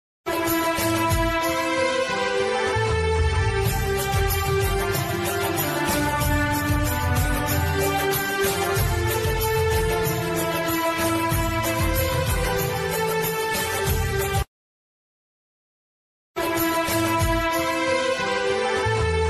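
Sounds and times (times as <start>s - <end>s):
independence day background music: 0.3s - 14.5s, 16.4s - 19.2s.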